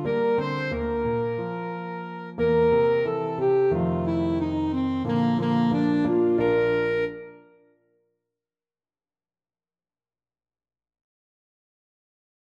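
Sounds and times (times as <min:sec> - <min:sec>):
alto saxophone playing an aria: 0:00.0 - 0:07.7.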